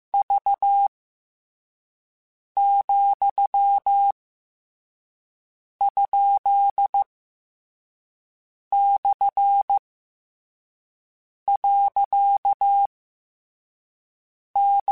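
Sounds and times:
Morse code CW code groups: 2.6s - 4.1s, 5.8s - 7.1s, 8.7s - 9.8s, 11.5s - 12.9s, 14.6s - 14.9s.

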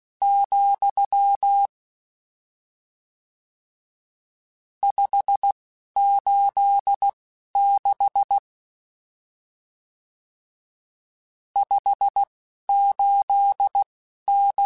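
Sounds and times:
Morse code CW code groups: 0.2s - 1.7s, 4.8s - 8.4s, 11.6s - 14.6s.

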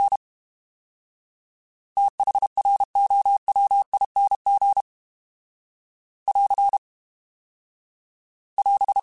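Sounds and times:
fast CW Morse code groups: 2.0s - 4.8s, 6.3s - 6.8s, 8.6s - 9.0s.

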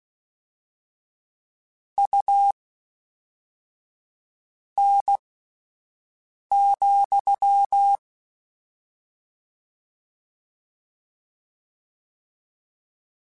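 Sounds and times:
Morse code beeps: 4.8s - 5.2s, 6.5s - 8.0s.

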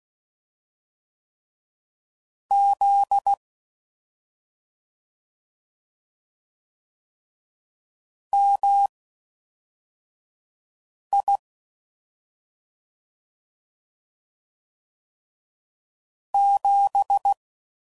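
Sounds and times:
Morse code CW code groups at 5 WPM: 2.5s - 3.4s, 8.4s - 8.9s, 11.2s - 11.4s, 16.4s - 17.4s.

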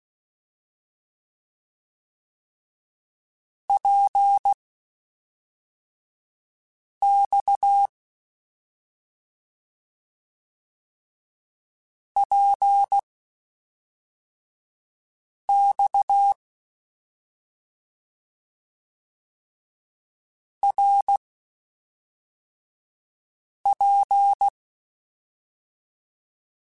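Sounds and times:
CW Morse code groups in mixed short runs: 3.7s - 4.6s, 7.0s - 7.9s, 12.2s - 13.0s, 15.5s - 16.4s, 20.7s - 21.2s, 23.7s - 24.5s.

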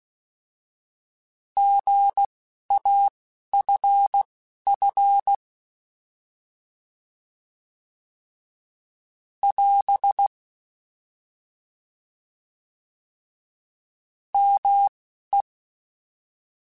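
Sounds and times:
Morse code CW code groups: 1.6s - 5.4s, 9.4s - 10.3s, 14.4s - 14.9s.

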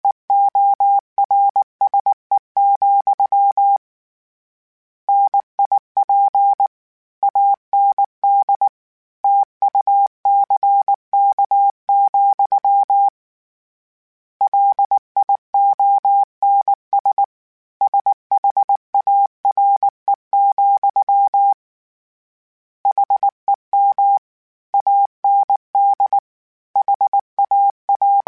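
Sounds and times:
Morse code beeps of word pairs: 0.0s - 3.8s, 5.1s - 6.7s, 7.3s - 8.7s, 9.3s - 13.1s, 14.4s - 21.6s, 22.9s - 24.2s, 24.8s - 26.2s, 26.8s - 28.2s.

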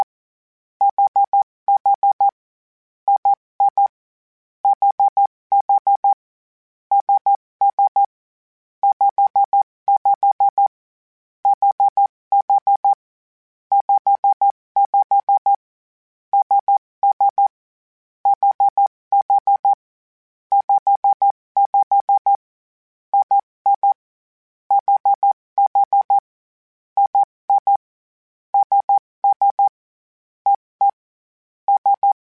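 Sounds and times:
morse code groups: 0.8s - 2.3s, 4.7s - 6.2s, 6.9s - 8.1s, 8.8s - 10.7s, 11.5s - 13.0s, 13.7s - 15.5s, 16.4s - 17.5s, 18.3s - 19.8s, 20.6s - 22.4s, 23.2s - 24.0s, 24.7s - 26.2s, 27.0s - 27.8s, 28.6s - 29.7s, 30.5s - 31.0s, 31.7s - 32.2s.

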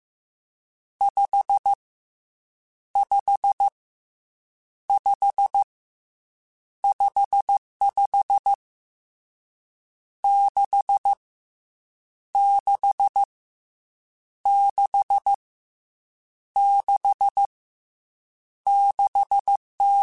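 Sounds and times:
Morse code CW code groups on ham radio: 1.0s - 1.8s, 5.0s - 5.7s, 6.9s - 8.6s, 10.3s - 11.2s, 12.4s - 13.3s, 14.5s - 15.4s, 16.6s - 17.5s, 18.7s - 20.0s.

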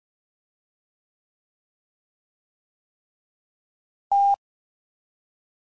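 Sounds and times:
CW Morse code groups at 5 WPM: 4.1s - 4.4s.

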